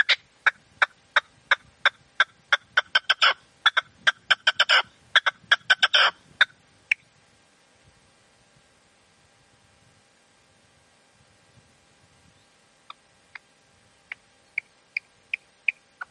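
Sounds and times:
partridge or tinamou song: 0.0 - 7.1, 11.4 - 16.0.

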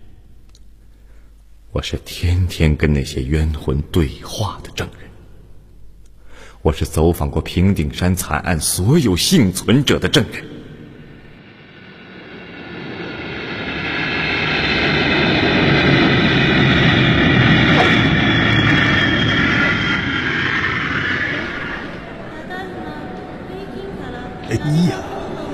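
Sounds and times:
speech: 1.8 - 5.1, 6.6 - 10.5
aircraft engines roaring at a large international airport: 11.4 - 23.5.

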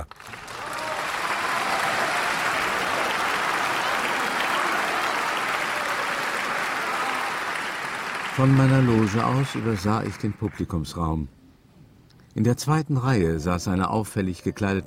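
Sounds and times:
thunderous applause from a large theatre audience: 0.0 - 10.9
speech: 8.4 - 11.4, 12.4 - 14.8.

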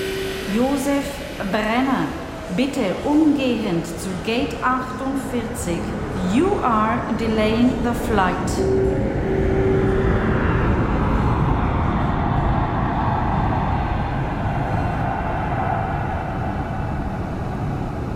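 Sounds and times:
airplane cabin engine drone: 0.0 - 18.1
speech: 0.5 - 9.9.

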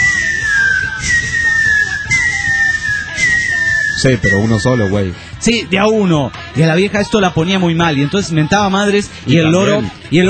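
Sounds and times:
person whistling a catcall imitation: 0.0 - 5.0
speech: 4.0 - 10.2.

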